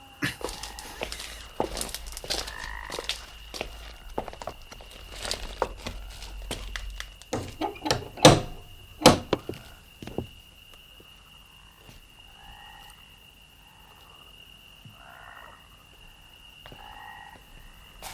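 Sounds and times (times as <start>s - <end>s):
soft shuffling: 0.4s - 10.4s
knocking on a door: 7.4s - 9.6s.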